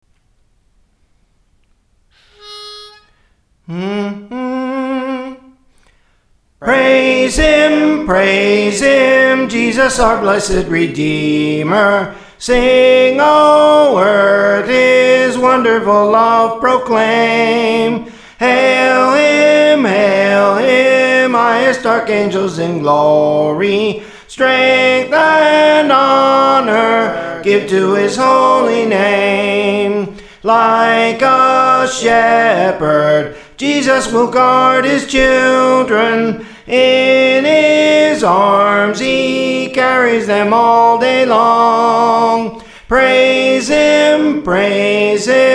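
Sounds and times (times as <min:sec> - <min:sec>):
soprano singing praise training: 0:03.7 - 0:05.6, 0:06.6 - 0:45.5.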